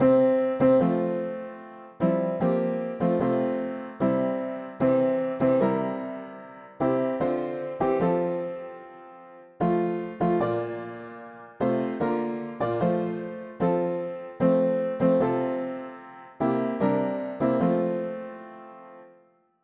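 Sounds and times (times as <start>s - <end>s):
mono piano: 0.0s - 19.6s.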